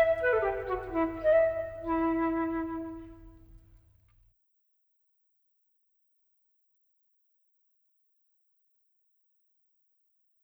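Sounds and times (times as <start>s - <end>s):
solo flute: 0.0s - 3.6s.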